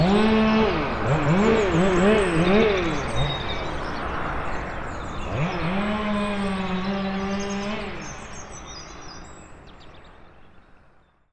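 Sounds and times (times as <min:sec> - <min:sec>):
traffic seen from the viewpoint at Escaleyrou: 0:00.0 - 0:05.8
chainsaw at Escaleyrou: 0:00.0 - 0:09.6.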